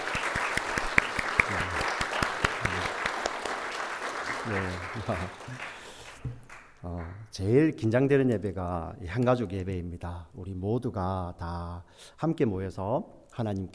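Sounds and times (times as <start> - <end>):
audience clapping: 0.0 - 7.3
speech: 4.5 - 13.7.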